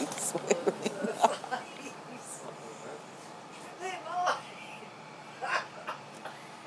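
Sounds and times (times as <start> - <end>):
woman laughing on the bus: 0.1 - 2.0, 5.4 - 6.0.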